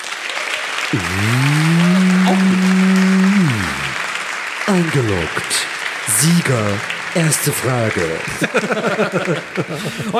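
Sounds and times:
audience applauding: 0.0s - 10.1s
speech: 0.9s - 1.6s, 4.7s - 10.1s
laughter: 0.9s - 4.1s, 7.9s - 10.1s
low mooing tone: 0.9s - 4.1s.

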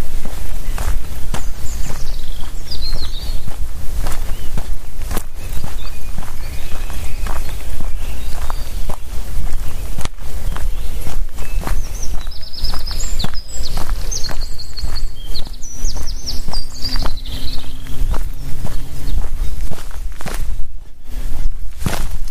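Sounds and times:
birds chirping in a forest: 0.0s - 22.3s
crunching footsteps on a forest walk: 0.0s - 22.3s
faint low hum: 15.9s - 21.0s
low rumble: 16.0s - 21.0s.

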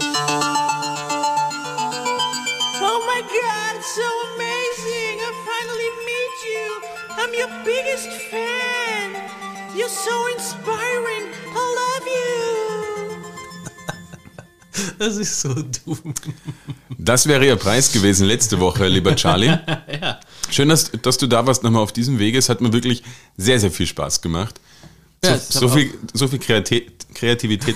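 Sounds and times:
podcast jingle for star guests: 0.0s - 14.9s
speech: 7.2s - 11.4s, 15.0s - 27.7s
laughter: 13.4s - 17.1s, 17.7s - 20.2s, 25.5s - 26.0s.

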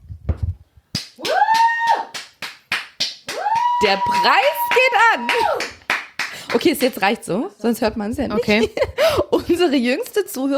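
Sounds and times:
one person clapping: 1.0s - 7.0s
one person cheering: 1.2s - 2.2s, 3.3s - 5.8s
speech: 3.8s - 5.8s, 6.5s - 10.5s.

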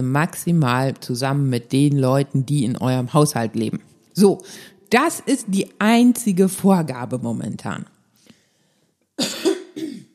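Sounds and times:
speech: 0.0s - 7.9s
person coughing: 9.2s - 10.1s.

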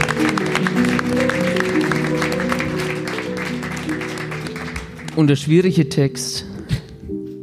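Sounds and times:
audience applause: 0.0s - 5.6s
speech: 5.2s - 6.5s.

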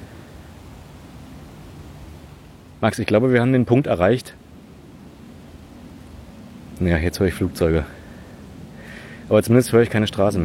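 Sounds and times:
wind in the treetops: 0.0s - 10.4s
speech: 2.8s - 4.4s, 6.8s - 8.0s, 9.3s - 10.4s.

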